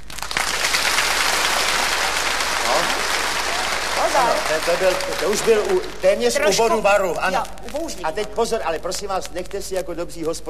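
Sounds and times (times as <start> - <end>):
warm applause from an audience during a comedic clapping lesson: 0.0 - 6.9
speech: 4.1 - 10.4.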